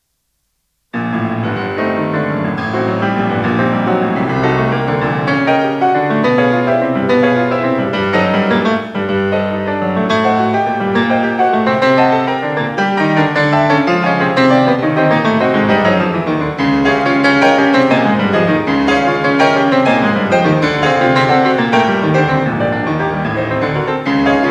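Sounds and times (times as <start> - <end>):
prelude music: 1.0 - 24.4.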